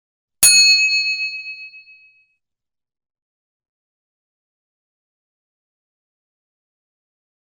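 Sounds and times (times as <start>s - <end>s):
bell: 0.4s - 2.2s.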